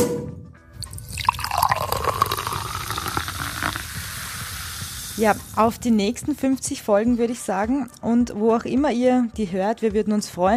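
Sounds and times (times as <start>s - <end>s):
liquid poured into glasses for a toast: 0.8s - 5.6s
speech: 5.2s - 10.5s.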